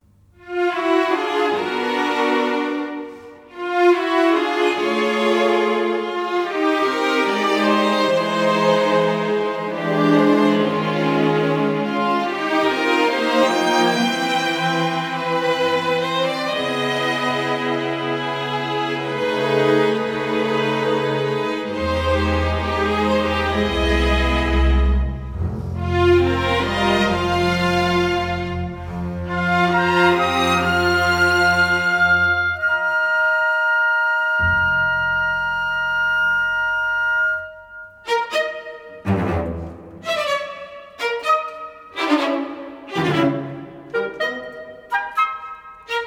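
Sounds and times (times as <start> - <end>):
bass orchestra: 0.0 - 46.0.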